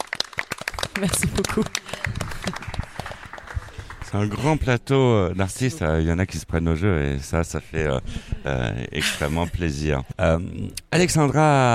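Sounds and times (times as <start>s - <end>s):
audience applause: 0.0s - 4.8s
speech: 1.0s - 2.7s, 4.1s - 11.7s
laughter: 8.1s - 9.7s.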